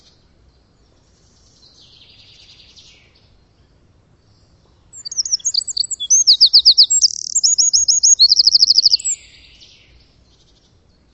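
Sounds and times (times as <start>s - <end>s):
bird song: 0.0s - 11.1s.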